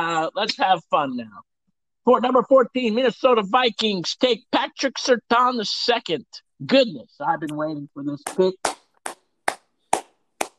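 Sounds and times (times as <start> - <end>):
speech: 0.0 - 8.7
hands clapping: 8.2 - 10.5.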